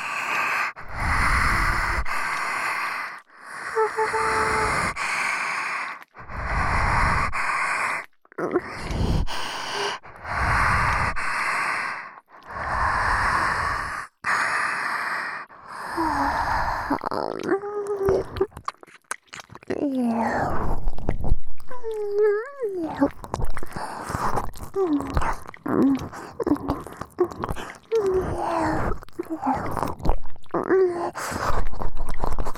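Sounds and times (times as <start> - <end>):
close-mic breathing: 0.0 - 17.1, 23.6 - 25.1, 25.8 - 29.9, 31.0 - 32.5
saliva mouth sounds: 0.0 - 32.5.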